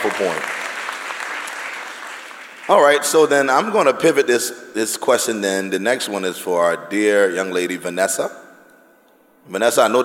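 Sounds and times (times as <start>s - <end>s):
speech: 0.0s - 0.6s, 2.7s - 8.4s, 9.5s - 10.0s
audience clapping: 0.0s - 3.0s.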